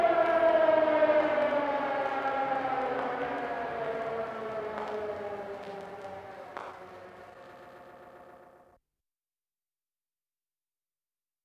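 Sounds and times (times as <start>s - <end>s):
siren wailing: 0.0s - 8.7s.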